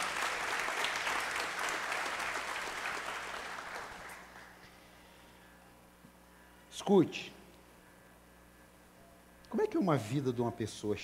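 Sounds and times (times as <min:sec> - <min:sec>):
audience applause: 0:00.0 - 0:04.5
speech: 0:06.8 - 0:07.4, 0:09.7 - 0:11.0.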